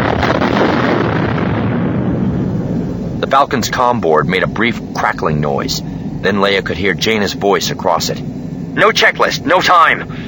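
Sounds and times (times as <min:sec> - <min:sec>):
bomb explosion: 0:00.0 - 0:04.9
speech: 0:03.3 - 0:10.1.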